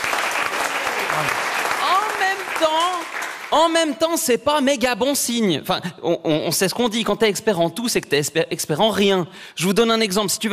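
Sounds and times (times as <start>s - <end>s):
audience applause: 0.0s - 3.9s
speech: 1.2s - 1.5s, 2.2s - 10.5s.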